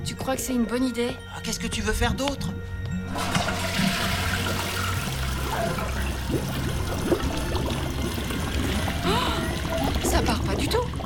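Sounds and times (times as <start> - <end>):
speech: 0.0 - 3.8, 10.0 - 11.0
clogged toilet flushing: 3.1 - 11.0.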